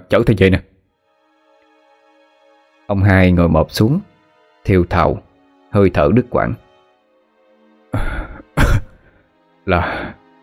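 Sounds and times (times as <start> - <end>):
speech: 0.1 - 0.7, 2.9 - 6.6, 7.9 - 8.2, 9.6 - 10.2
long fit of coughing: 8.0 - 9.2.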